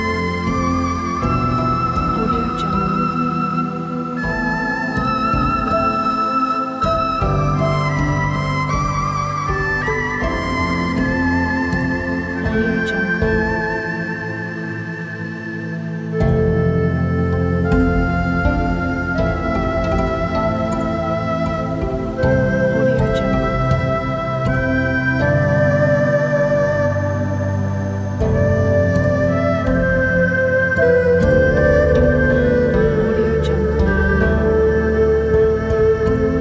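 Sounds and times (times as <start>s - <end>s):
erhu: 0.0s - 36.3s
koto: 0.0s - 36.3s.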